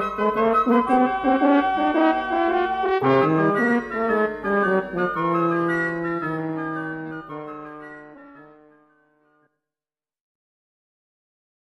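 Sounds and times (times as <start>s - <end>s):
wind quintet playing: 0.2s - 6.7s.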